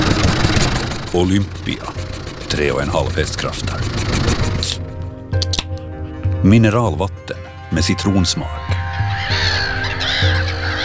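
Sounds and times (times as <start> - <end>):
black-headed gulls calling: 0.0 - 4.9, 8.4 - 10.8
speech: 1.1 - 4.1, 6.4 - 9.6.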